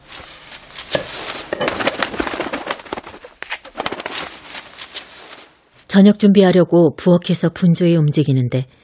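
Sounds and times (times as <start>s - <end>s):
crow flapping its wings: 0.0s - 5.6s
speech: 6.0s - 8.8s.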